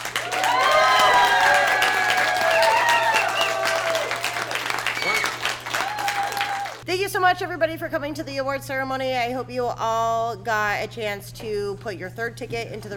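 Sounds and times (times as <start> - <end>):
audience applause: 0.0 - 6.8
speech: 6.9 - 12.9.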